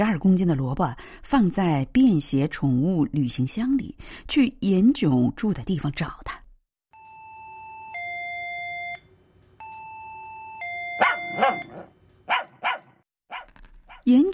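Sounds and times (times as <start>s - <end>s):
speech: 0.0s - 6.4s, 14.1s - 14.3s
doorbell ringing: 10.6s - 11.9s.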